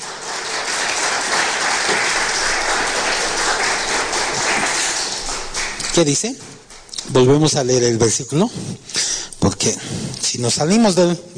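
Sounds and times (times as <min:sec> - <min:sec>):
audience applause: 0:00.0 - 0:06.9
speech: 0:06.0 - 0:11.3.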